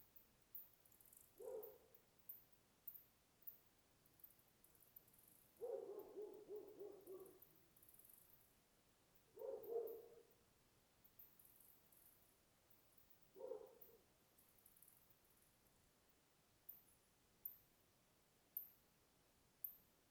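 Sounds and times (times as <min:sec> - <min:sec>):
dogs in a small town at night: 0:01.4 - 0:01.8, 0:05.6 - 0:07.4, 0:09.4 - 0:10.2, 0:13.4 - 0:13.9.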